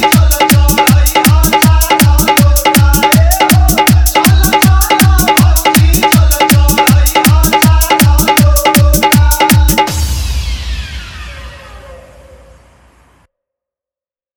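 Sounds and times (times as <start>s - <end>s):
dholki drum music mix: 0.0s - 10.6s.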